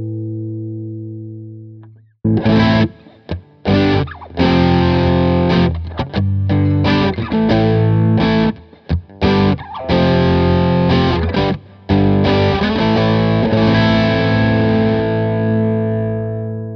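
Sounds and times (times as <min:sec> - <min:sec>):
electric guitar on bridge pickup with full dirt: 0:02.3 - 0:16.7.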